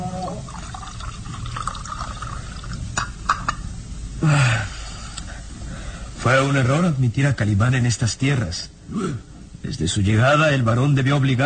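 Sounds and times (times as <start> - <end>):
liquid poured to refill a drinking goblet: 0.1 - 3.1
speech: 6.2 - 11.4.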